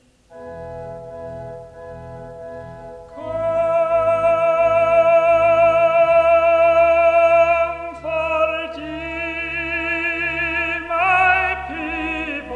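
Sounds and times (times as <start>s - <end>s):
voice producing vowel samples: 3.1s - 12.5s.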